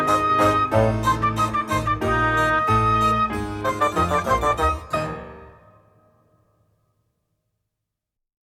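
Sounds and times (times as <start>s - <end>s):
mock baroque music: 0.0s - 6.1s.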